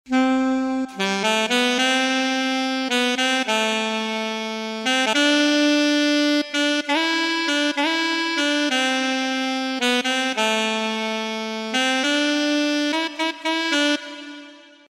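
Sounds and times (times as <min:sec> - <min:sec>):
saxophone: 0:00.1 - 0:14.8.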